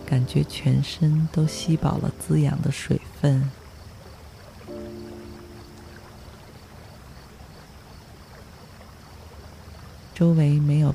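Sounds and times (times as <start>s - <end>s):
faint tonal hum: 0.0s - 3.6s, 4.6s - 7.1s
river water babbling: 0.0s - 10.9s
speech: 0.1s - 3.6s, 10.2s - 10.9s.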